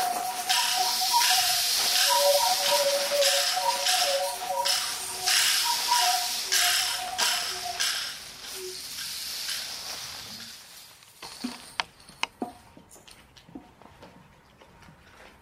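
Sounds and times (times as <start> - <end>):
soundscape: 0.0 - 8.7.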